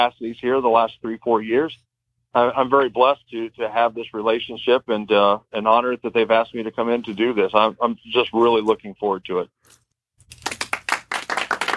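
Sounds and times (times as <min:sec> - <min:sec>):
speech: 0:00.0 - 0:09.8
applause: 0:10.3 - 0:11.7.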